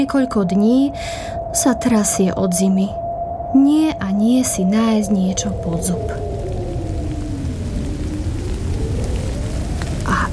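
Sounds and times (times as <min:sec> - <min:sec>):
speech: 0:00.0 - 0:06.4
rain starting to fall in nature: 0:04.5 - 0:10.3.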